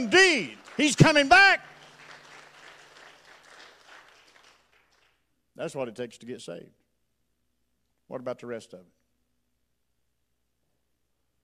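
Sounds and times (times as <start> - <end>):
speech: 0.0 - 1.7, 5.6 - 6.8, 8.1 - 9.0
audience clapping: 0.0 - 5.3.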